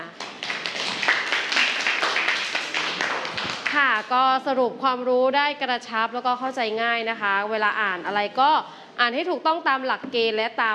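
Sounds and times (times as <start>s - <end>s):
group applauding: 0.0s - 4.0s
speech: 4.0s - 10.7s.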